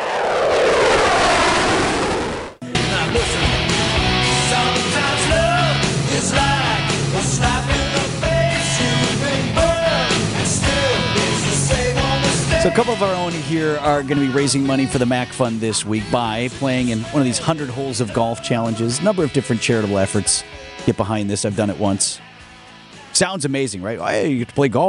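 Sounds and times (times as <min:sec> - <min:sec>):
fighter jet flying low past tower: 0:00.0 - 0:02.6
steady rhythmic music track: 0:02.6 - 0:24.6
speech: 0:12.7 - 0:22.3, 0:23.2 - 0:24.8.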